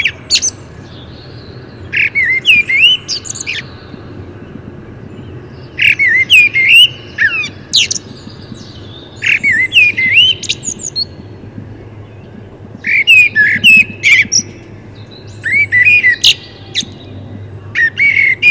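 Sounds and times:
common blackbird Turdus merula singing: 0.0s - 18.5s.

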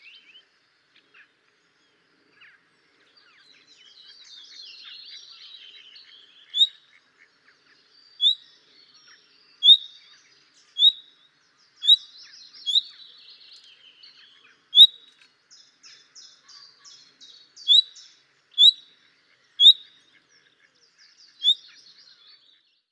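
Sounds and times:
common nightingale whistling and chattering: 3.4s - 7.0s, 8.0s - 18.9s, 19.5s - 20.0s, 21.2s - 22.4s.

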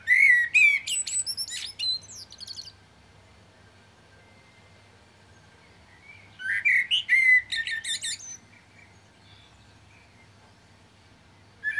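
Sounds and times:
common blackbird Turdus merula whistled warbling song with shrill twitters: 0.0s - 2.8s, 5.9s - 9.5s.

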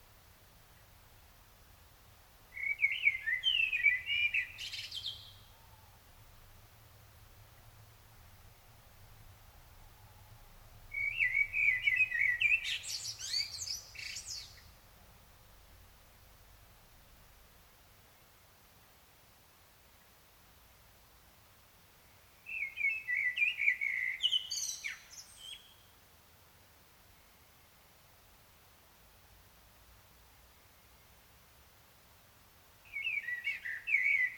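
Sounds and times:
Common blackbird song: 2.5s - 6.0s, 9.8s - 14.8s, 22.4s - 25.9s, 32.8s - 34.3s.

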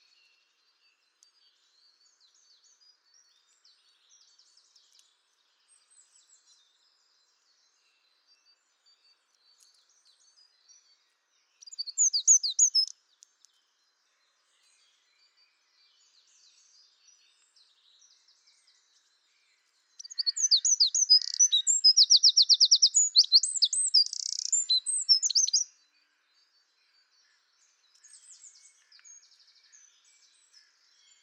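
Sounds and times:
Eurasian wren Troglodytes troglodytes singing: 11.6s - 12.9s, 20.0s - 25.7s.

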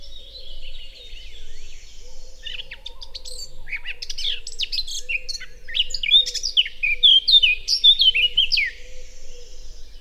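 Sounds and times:
Eurasian blackcap singing: 2.4s - 8.8s.

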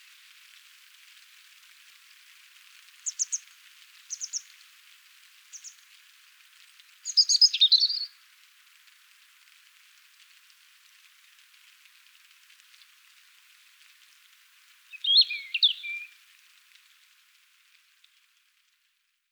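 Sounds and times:
European robin singing: 3.0s - 3.5s, 4.1s - 4.5s, 5.5s - 5.8s, 7.0s - 8.1s, 14.9s - 16.2s.

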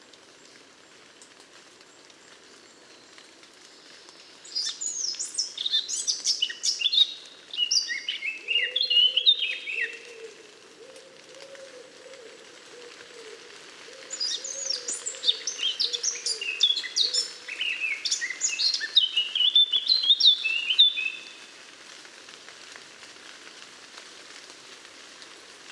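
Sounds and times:
Eurasian blackcap song: 4.5s - 10.2s, 14.2s - 21.3s.

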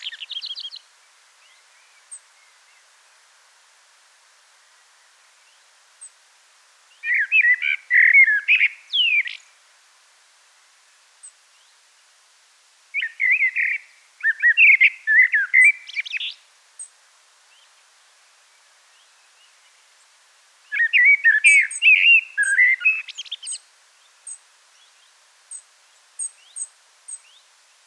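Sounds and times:
common blackbird song: 0.0s - 2.8s, 6.9s - 9.4s, 13.0s - 16.4s, 20.7s - 25.6s.

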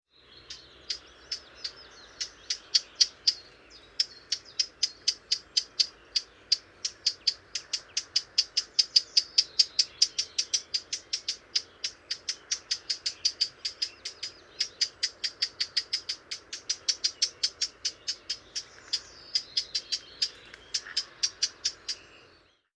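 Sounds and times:
Eurasian blackcap tacking calls: 0.4s - 22.3s.

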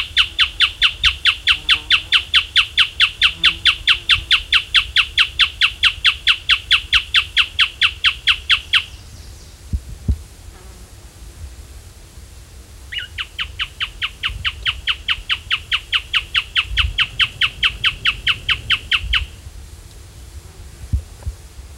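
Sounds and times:
bird calls: 0.0s - 9.6s, 12.9s - 19.4s.

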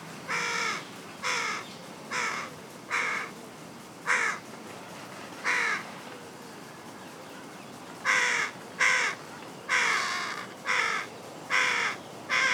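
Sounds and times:
Carrion crow Corvus corone giving harsh caws: 0.3s - 3.3s, 4.1s - 4.4s, 8.1s - 12.5s.

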